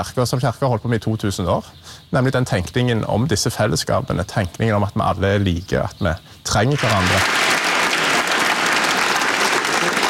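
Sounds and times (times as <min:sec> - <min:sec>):
speech: 0:00.0 - 0:07.4
large crowd applauding in a cathedral: 0:06.6 - 0:10.0.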